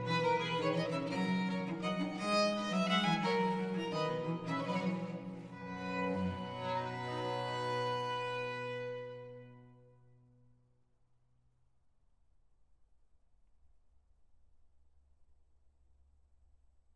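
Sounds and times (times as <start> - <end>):
baroque trio sonata movement: 0.0 - 9.6.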